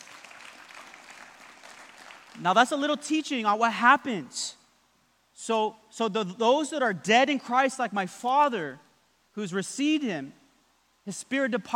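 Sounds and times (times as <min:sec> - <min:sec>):
crowd clapping: 0:00.0 - 0:02.5
speech: 0:02.4 - 0:04.6, 0:05.4 - 0:08.8, 0:09.4 - 0:10.4, 0:11.1 - 0:11.7.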